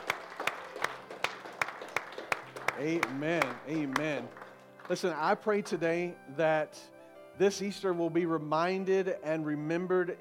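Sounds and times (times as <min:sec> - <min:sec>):
audience applauding: 0:00.0 - 0:05.2
speech: 0:02.8 - 0:10.2.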